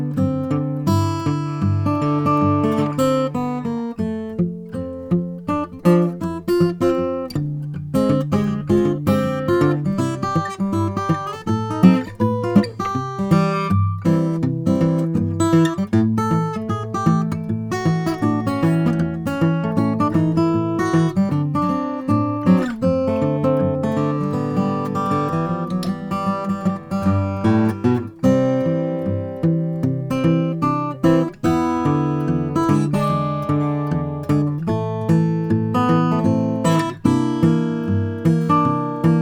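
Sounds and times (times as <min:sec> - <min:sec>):
1930s Gibson L-00 guitar: 0:00.0 - 0:39.1.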